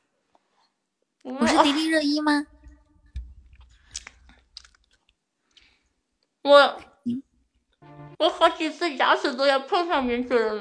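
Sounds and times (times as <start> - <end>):
speech: 1.2 - 2.5, 6.5 - 7.2, 8.2 - 10.5
person chewing bread: 3.4 - 5.8.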